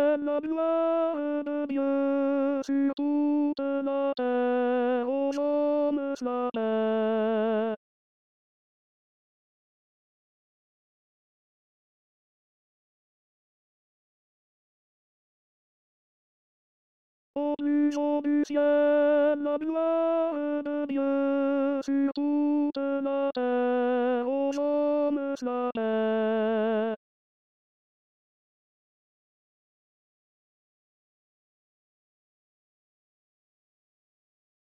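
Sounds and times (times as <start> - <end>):
tenor singing: 0.0 - 7.8, 17.4 - 27.0.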